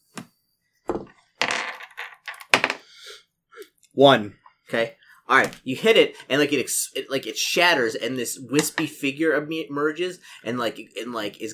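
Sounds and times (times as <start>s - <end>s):
six-sided die rolling onto a table: 0.9s - 2.8s
speech: 4.0s - 11.5s.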